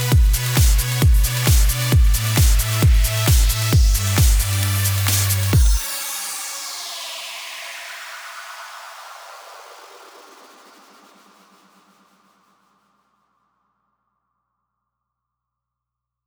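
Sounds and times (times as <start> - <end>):
music mix in B minor: 0.0 - 6.8.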